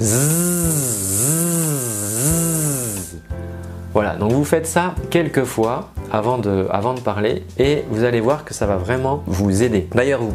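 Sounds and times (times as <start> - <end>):
speech: 0.0 - 0.4, 4.2 - 10.3
voice imitating buzzing mosquito: 0.0 - 3.2.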